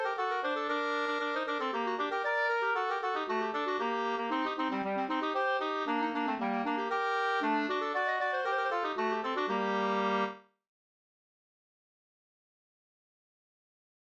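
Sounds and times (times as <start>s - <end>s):
folk dance music: 0.0s - 10.3s.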